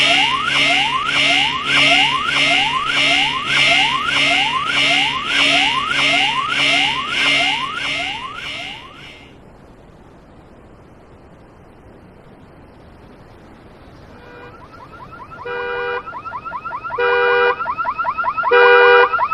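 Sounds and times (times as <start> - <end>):
alarms: 0.0 - 9.3, 14.2 - 19.3
sirens: 0.0 - 9.3, 14.1 - 19.3.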